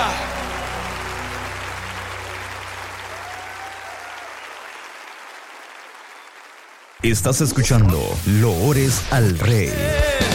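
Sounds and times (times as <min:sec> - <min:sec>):
audience applause: 0:00.0 - 0:07.5
speech: 0:07.0 - 0:10.2.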